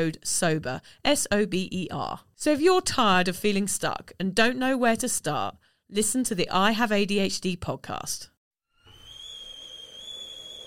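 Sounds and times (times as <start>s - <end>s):
speech: 0.0s - 8.3s
kettle whistling as water boils: 8.7s - 10.6s.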